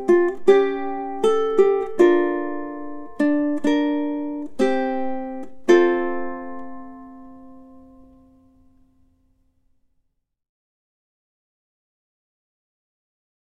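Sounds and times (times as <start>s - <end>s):
ukulele tune: 0.0s - 9.3s.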